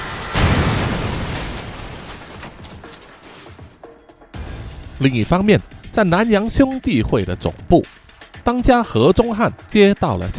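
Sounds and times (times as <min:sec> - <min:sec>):
helicopter engine exploding with sparks and smoke: 0:00.0 - 0:02.9
speech: 0:05.0 - 0:10.3.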